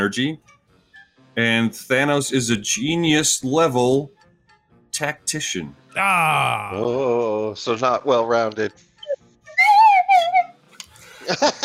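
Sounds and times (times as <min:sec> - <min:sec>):
speech: 0:00.0 - 0:00.6, 0:01.4 - 0:04.2, 0:04.9 - 0:08.9, 0:11.3 - 0:11.6
slide whistle: 0:09.0 - 0:10.6
laughter: 0:11.0 - 0:11.6.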